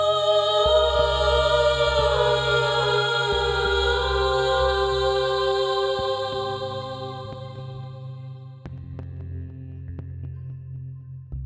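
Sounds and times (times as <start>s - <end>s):
chanting: 0.0s - 8.7s.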